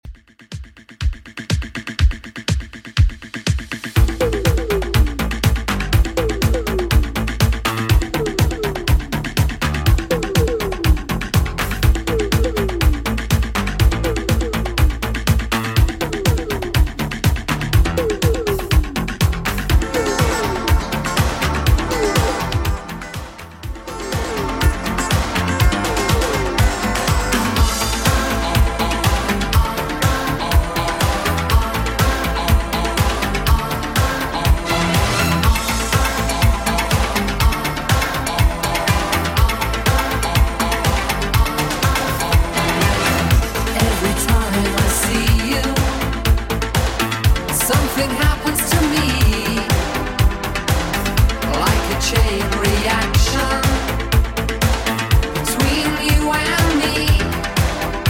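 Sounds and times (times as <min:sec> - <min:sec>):
80s drum loop at 122 bpm: 0:00.0 - 0:58.0.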